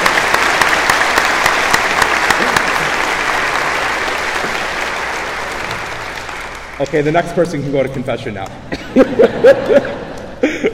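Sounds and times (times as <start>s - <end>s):
audience applauding: 0.0s - 8.5s
speech: 6.8s - 10.0s
laughter: 8.6s - 10.7s.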